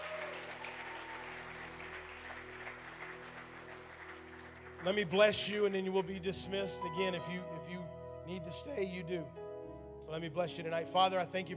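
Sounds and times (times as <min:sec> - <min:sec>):
audience clapping hands in praise: 0:00.0 - 0:06.3
speech: 0:04.8 - 0:09.4, 0:10.1 - 0:11.5.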